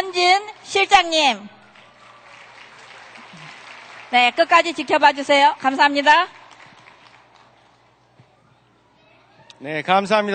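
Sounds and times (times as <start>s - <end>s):
speech: 0.0s - 1.6s, 4.1s - 6.4s, 9.6s - 10.3s
audience applause: 1.6s - 8.0s.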